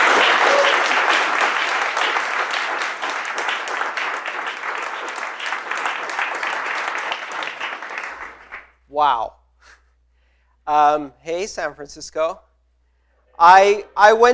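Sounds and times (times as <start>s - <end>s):
audience round of applause: 0.0s - 8.7s
speech: 9.0s - 9.4s, 10.7s - 12.5s, 13.4s - 14.3s.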